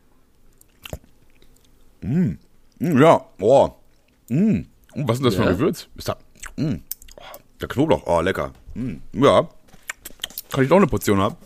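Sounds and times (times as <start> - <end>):
person biting and chewing a spoonful of cooked food: 0.6 - 1.8
speech: 2.0 - 6.9, 7.6 - 9.6, 10.5 - 11.4.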